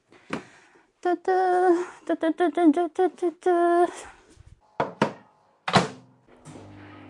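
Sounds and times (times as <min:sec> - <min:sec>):
speech: 0:01.0 - 0:04.2
microwave oven noise: 0:05.8 - 0:07.0.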